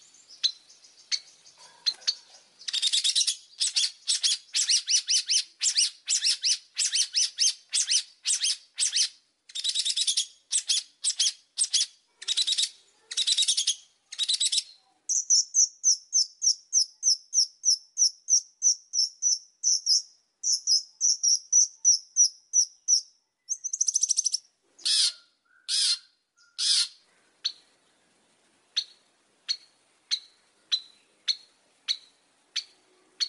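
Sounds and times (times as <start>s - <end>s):
Oriental magpie-robin song: 2.6s - 33.2s.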